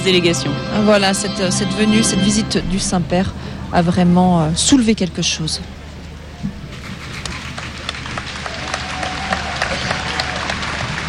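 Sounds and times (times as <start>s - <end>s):
speech: 0.0s - 5.8s
crowd applauding: 6.7s - 11.0s.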